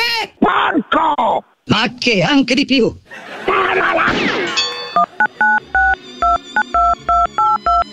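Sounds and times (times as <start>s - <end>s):
speech: 0.2s - 4.4s
laughter: 3.1s - 5.6s
touch-tone telephone dialing beeps: 4.9s - 7.9s.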